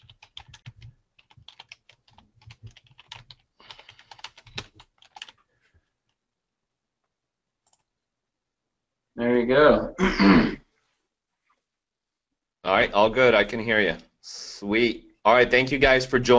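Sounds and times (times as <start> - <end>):
typing a chat message on a computer keyboard: 0.0 - 5.4
speech: 9.2 - 10.6, 12.9 - 16.3.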